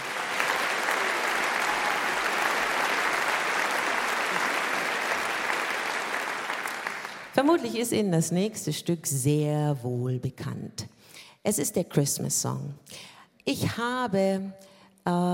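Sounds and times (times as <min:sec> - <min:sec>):
audience applause for the band: 0:00.0 - 0:07.4
speech: 0:07.4 - 0:15.3.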